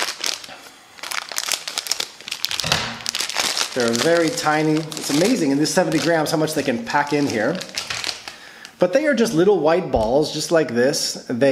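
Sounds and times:
70-gram plastic bag of draże candy crackling as it is cut open: 0.0s - 8.6s
speech: 3.8s - 7.8s, 8.8s - 11.5s.

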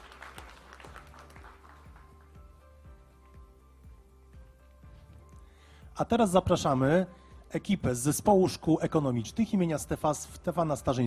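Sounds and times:
crowd applause: 0.0s - 2.6s
speech: 6.0s - 11.0s.

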